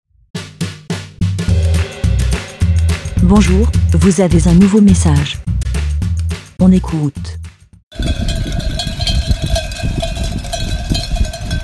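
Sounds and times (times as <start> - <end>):
low rumble: 1.3 - 10.6
speech: 3.3 - 5.5, 6.6 - 7.4
many small sheep bells clinking and jangling: 7.9 - 11.6.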